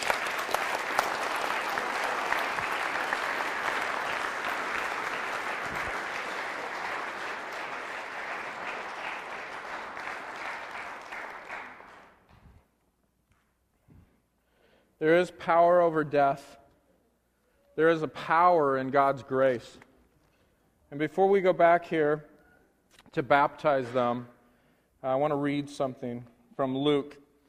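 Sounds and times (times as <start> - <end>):
applause: 0.0 - 12.6
speech: 15.0 - 16.6, 17.8 - 19.8, 20.9 - 22.3, 23.1 - 24.3, 25.0 - 27.2.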